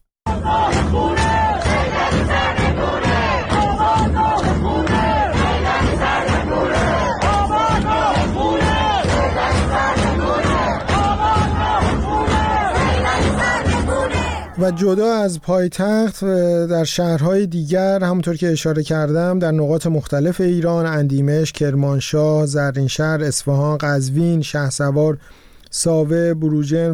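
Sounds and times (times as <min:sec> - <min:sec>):
large crowd of protesters chanting slogans in Sadeghieh, Tehran: 0:00.3 - 0:15.3
speech: 0:14.6 - 0:26.9.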